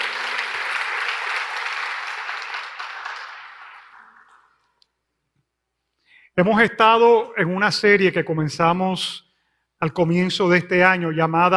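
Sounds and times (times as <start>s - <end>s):
audience applause: 0.0s - 4.7s
speech: 6.4s - 9.2s, 9.8s - 11.5s.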